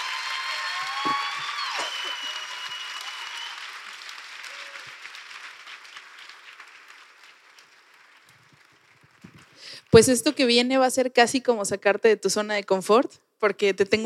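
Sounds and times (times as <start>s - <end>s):
audience applause: 0.0s - 9.8s
speech: 10.0s - 14.0s.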